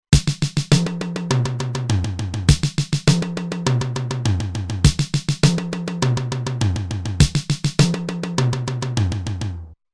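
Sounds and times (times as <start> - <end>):
Roland TR-505 drum machine fill in 4-4: 0.0 - 9.6.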